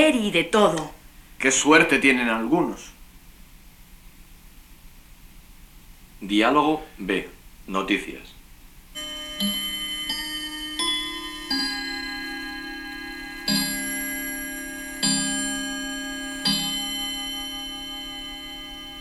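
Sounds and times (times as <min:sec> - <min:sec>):
speech: 0:00.0 - 0:03.0, 0:06.2 - 0:08.3, 0:09.4 - 0:09.6
clock with ringing bell-like metallic strikes: 0:09.0 - 0:18.9.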